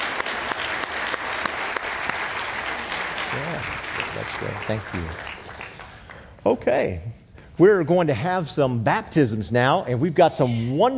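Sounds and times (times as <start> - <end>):
audience round of applause: 0.0 - 6.2
speech: 3.3 - 5.3, 6.4 - 10.9.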